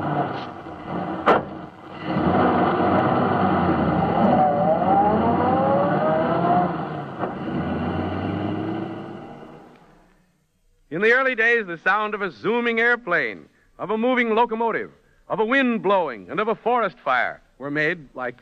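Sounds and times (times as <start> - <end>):
recording of a moving automobile: 0.0 - 9.8
speech: 11.0 - 18.3.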